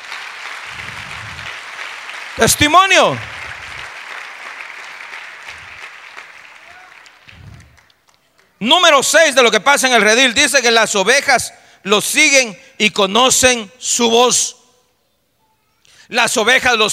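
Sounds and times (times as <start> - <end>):
audience applauding: 0.0 - 8.6
speech: 2.4 - 3.4, 8.6 - 14.6, 16.1 - 16.9.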